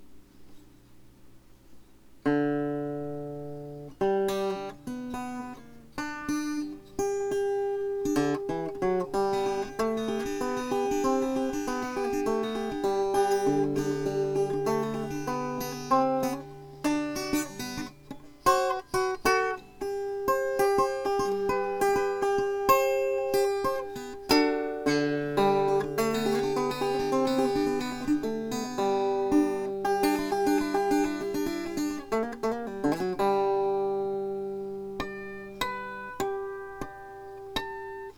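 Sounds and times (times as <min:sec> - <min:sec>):
guitar: 0:01.6 - 0:38.1
banjo: 0:02.2 - 0:38.1.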